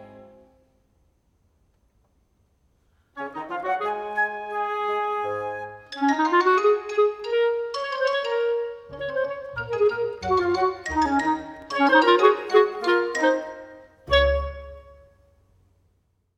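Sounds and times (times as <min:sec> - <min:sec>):
clarinet: 0:00.0 - 0:00.6, 0:03.2 - 0:15.3.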